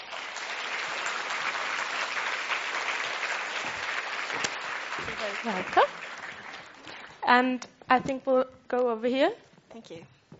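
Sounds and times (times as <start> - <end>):
audience applause: 0.0 - 7.2
speech: 5.2 - 6.0, 7.3 - 10.2.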